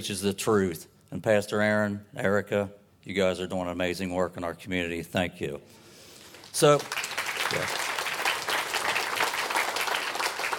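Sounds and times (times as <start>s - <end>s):
speech: 0.0s - 5.8s, 6.6s - 7.8s
audience applause: 6.4s - 10.5s.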